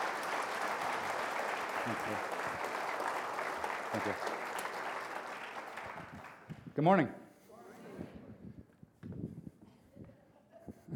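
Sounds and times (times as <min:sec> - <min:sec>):
church service audience applause welcoming a speaker: 0:00.0 - 0:06.5
speech: 0:01.8 - 0:02.4, 0:03.9 - 0:04.4, 0:06.8 - 0:07.2.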